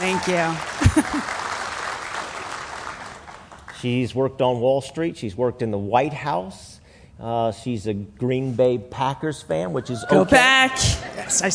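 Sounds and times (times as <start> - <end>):
audience clapping: 0.0 - 4.0
speech: 0.2 - 1.4, 3.8 - 11.5
laughter: 0.8 - 1.3.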